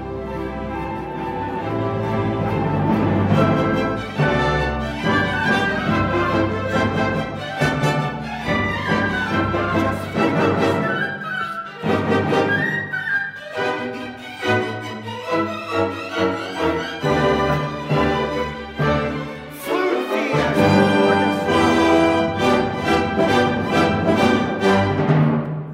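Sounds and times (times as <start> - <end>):
full orchestra playing main theme: 0.0 - 25.7.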